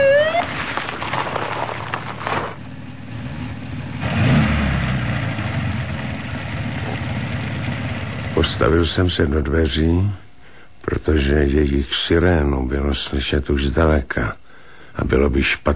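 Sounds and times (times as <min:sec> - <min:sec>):
Mercedes 220 car engine driving up and idling: 0:00.0 - 0:09.7
speech: 0:08.6 - 0:10.2, 0:10.9 - 0:14.4, 0:15.0 - 0:15.7.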